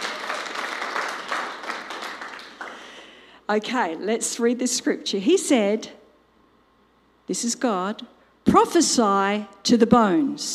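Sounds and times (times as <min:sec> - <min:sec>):
audience applause: 0:00.0 - 0:03.0
speech: 0:03.5 - 0:06.0, 0:07.3 - 0:10.5.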